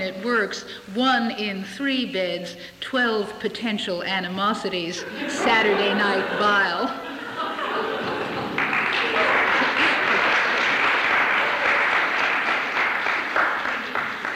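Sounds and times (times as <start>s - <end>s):
speech: 0.1s - 7.1s
laughter: 4.9s - 12.8s
audience applause: 7.6s - 14.3s.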